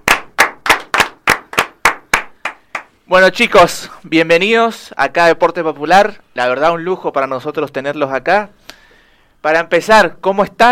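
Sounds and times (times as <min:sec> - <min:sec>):
hand claps as applause for two football coaches: 0:00.0 - 0:03.0
speech: 0:03.1 - 0:08.6, 0:09.4 - 0:10.7.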